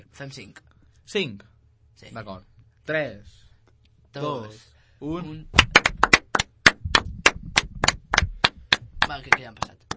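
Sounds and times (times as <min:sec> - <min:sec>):
speech: 0:00.2 - 0:03.4, 0:04.1 - 0:05.9, 0:09.1 - 0:09.8
applause: 0:05.6 - 0:09.9.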